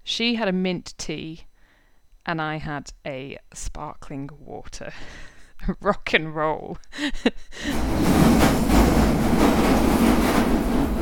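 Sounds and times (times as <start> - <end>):
speech: 0.1 - 1.5, 2.3 - 8.5
busy London Underground station at rush hour: 7.7 - 10.9.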